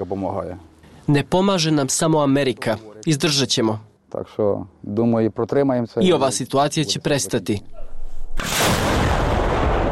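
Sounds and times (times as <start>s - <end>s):
speech: 0.1s - 8.6s
American Paladin howitzer of the 24th artillery brigade firing near Chasiv Yar: 8.4s - 9.9s.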